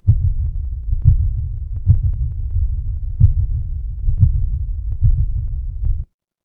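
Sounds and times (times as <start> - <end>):
horror heartbeat: 0.0 - 6.1.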